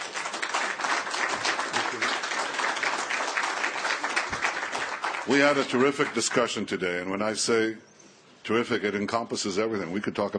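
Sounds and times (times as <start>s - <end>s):
large crowd applause: 0.0s - 6.4s
speech: 5.3s - 7.9s, 8.5s - 10.3s.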